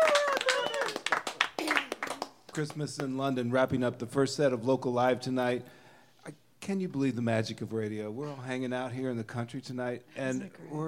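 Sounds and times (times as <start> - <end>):
people clapping in studio: 0.0 - 3.4
speech: 2.6 - 10.8.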